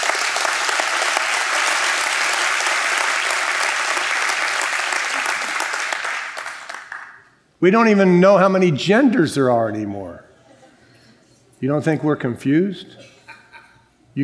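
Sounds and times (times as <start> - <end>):
crowd applauding: 0.0 - 7.3
speech: 7.6 - 10.2, 11.6 - 13.1
laughter: 10.3 - 11.4, 12.9 - 14.0.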